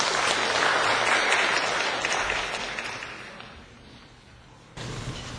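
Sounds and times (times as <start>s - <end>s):
audience clapping: 0.0s - 3.8s.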